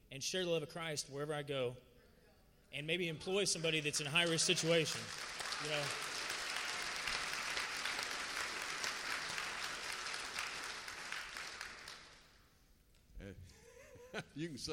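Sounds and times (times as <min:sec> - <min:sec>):
speech: 0:00.2 - 0:01.9, 0:02.7 - 0:06.1, 0:14.4 - 0:14.7
audience applauding: 0:03.5 - 0:12.4
laughter: 0:13.4 - 0:14.7.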